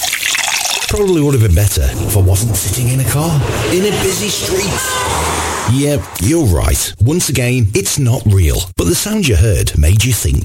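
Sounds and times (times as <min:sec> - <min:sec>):
drink poured into a glass at a backyard barbecue: 0:00.0 - 0:01.1
speech: 0:00.9 - 0:10.4.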